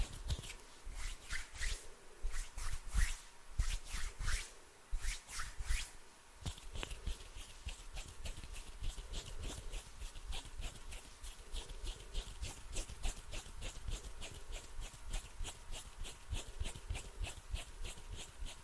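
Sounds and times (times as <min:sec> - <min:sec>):
fluttering fingers rubbing and brushing: 0:00.0 - 0:18.6.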